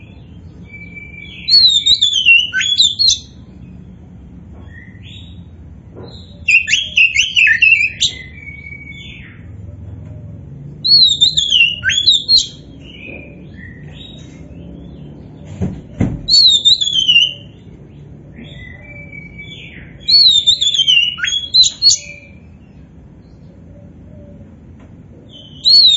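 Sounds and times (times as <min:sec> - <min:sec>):
Oriental magpie-robin singing whistles: 0:00.6 - 0:03.4, 0:06.4 - 0:09.4, 0:10.8 - 0:13.8, 0:16.3 - 0:17.5, 0:18.4 - 0:22.4, 0:25.3 - 0:25.9.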